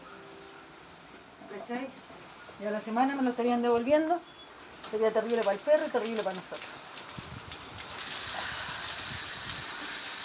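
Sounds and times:
speech: 1.5 - 6.8
water washing a patio: 4.8 - 10.2.

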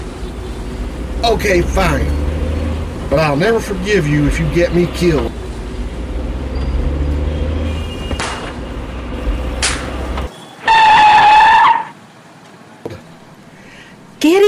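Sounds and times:
car engine rumble in a radio drama: 0.0 - 10.9
car tire screech: 0.8 - 12.0
speech: 1.2 - 2.2, 3.1 - 5.4, 14.2 - 14.4.

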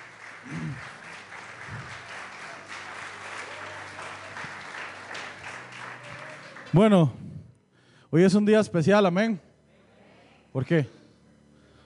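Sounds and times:
audience applause: 0.0 - 7.2
speech: 6.7 - 7.2, 8.1 - 9.5, 10.5 - 11.0.

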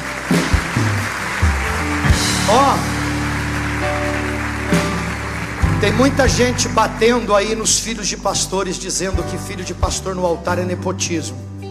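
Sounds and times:
audience clapping: 0.0 - 8.0
speech: 5.8 - 11.5.

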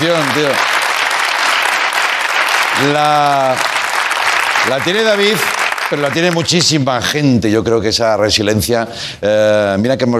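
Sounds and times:
speech: 0.0 - 0.8, 2.8 - 3.8, 4.6 - 10.1
applause: 0.0 - 6.8.

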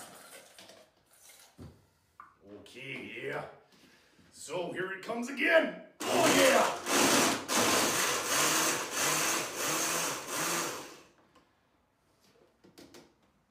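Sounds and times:
speech: 2.7 - 3.6, 4.4 - 6.9
blender whirring mixing a piña colada: 6.0 - 11.2.

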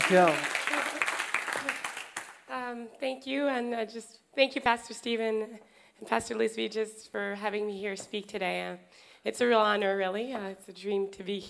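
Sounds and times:
audience applause: 0.0 - 2.4
speech: 0.1 - 0.5, 2.7 - 11.4.

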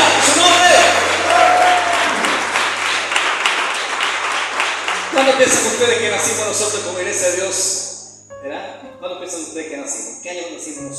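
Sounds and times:
audience applauding: 0.0 - 5.8
speech: 5.4 - 7.8, 8.4 - 10.9.

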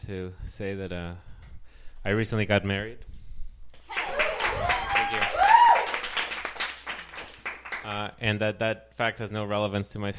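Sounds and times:
speech: 0.0 - 1.3, 2.0 - 3.1, 7.8 - 10.1
audience applause: 3.9 - 8.0.

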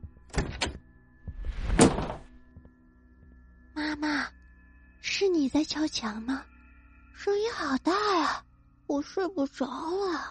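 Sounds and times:
bedroom door latch clicks: 0.3 - 0.8
bedroom door swinging open: 0.3 - 2.4
speech: 5.2 - 6.5, 7.2 - 10.3.

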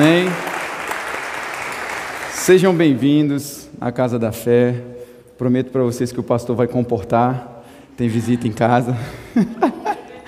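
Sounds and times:
audience applause: 0.0 - 2.8
speech: 2.4 - 9.8
laughter: 8.1 - 10.2.

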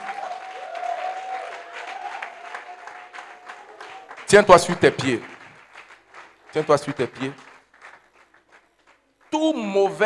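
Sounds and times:
high-pitched whoop or whistle: 0.0 - 4.0
crowd clapping and cheering: 0.0 - 10.0
speech: 4.3 - 5.3, 6.6 - 7.4, 9.5 - 10.0.

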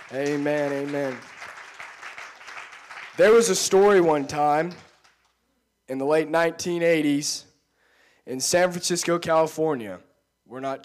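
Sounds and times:
audience clapping: 0.0 - 5.4
speech: 0.1 - 1.4, 3.2 - 4.9, 5.9 - 7.5, 8.2 - 10.8.

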